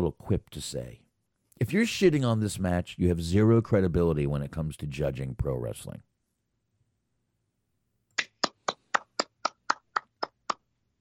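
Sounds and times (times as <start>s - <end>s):
speech: 0.0s - 1.0s, 1.6s - 6.1s
hands clapping near a live microphone: 8.2s - 10.7s.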